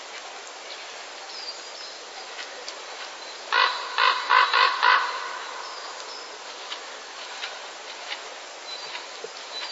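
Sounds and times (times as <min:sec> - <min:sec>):
common raven courtship calls: 0:03.5 - 0:06.0.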